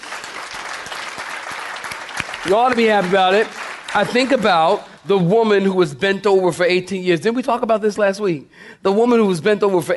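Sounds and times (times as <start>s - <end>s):
audience clapping hands: 0.0s - 5.1s
speech: 2.4s - 9.9s.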